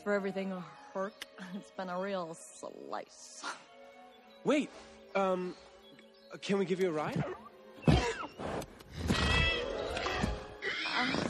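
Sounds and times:
speech: 0.0s - 3.7s, 4.4s - 5.7s, 6.3s - 7.4s
winged horse Pegasus snorting and whinnying in an animated scene: 7.2s - 11.2s.

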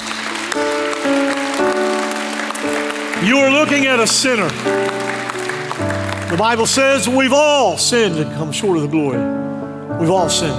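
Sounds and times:
audience clapping: 0.0s - 7.4s
sustained organ chords: 0.0s - 10.5s
speech: 3.2s - 5.2s, 6.3s - 10.5s.

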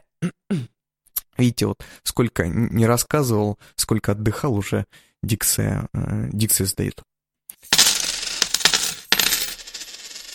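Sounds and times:
speech: 0.2s - 0.7s, 1.4s - 7.1s
coins dropping and clattering: 7.6s - 10.3s.

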